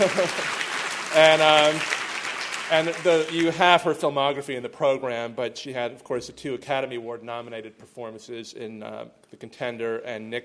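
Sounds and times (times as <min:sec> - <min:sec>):
speech: 0:00.0 - 0:02.0, 0:02.7 - 0:10.4
crowd applauding: 0:00.0 - 0:03.9.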